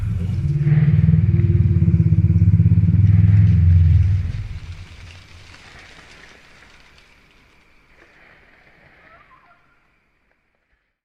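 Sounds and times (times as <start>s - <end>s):
Carnotaurus call reconstruction: 0.0s - 4.6s
ambience: 0.0s - 10.9s.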